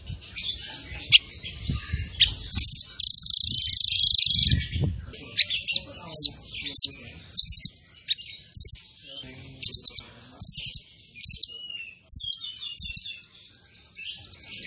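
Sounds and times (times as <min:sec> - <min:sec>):
zebra finch song with buzzy bursts and trills: 0:00.0 - 0:14.6.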